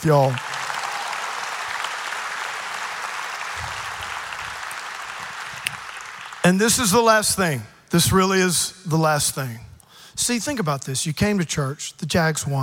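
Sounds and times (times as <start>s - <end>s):
speech: 0.0s - 0.5s, 6.4s - 12.6s
audience clapping: 0.0s - 7.1s.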